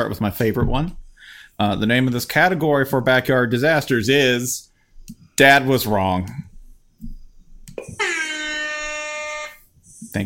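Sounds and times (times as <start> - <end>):
speech: 0.0 - 4.7, 5.4 - 6.5
air horn sound effect: 8.0 - 9.7.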